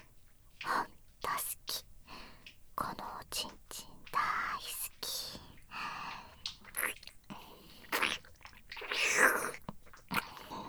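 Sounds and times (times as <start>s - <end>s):
person whispering: 0.6s - 1.9s, 2.8s - 5.5s, 6.7s - 10.6s.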